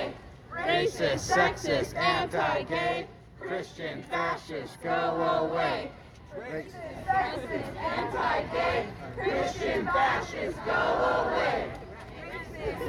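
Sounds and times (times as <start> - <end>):
abortion-rights activists chanting in unison at a protest in Texas: 0.0 - 6.0, 6.8 - 12.8
speech: 0.8 - 11.8.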